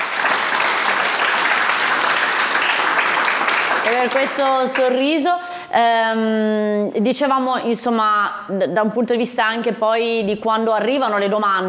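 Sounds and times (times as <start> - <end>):
applause: 0.0 - 5.0
speech: 3.9 - 11.6.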